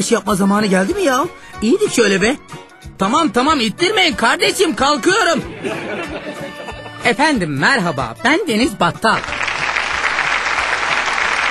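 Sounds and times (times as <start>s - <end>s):
speech: 0.0s - 9.4s
laughter: 5.5s - 7.1s
applause: 9.2s - 11.5s.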